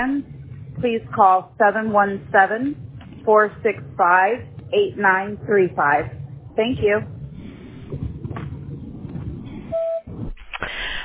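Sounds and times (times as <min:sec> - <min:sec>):
speech: 0:00.0 - 0:07.2
voicemail beep tone: 0:09.7 - 0:10.1.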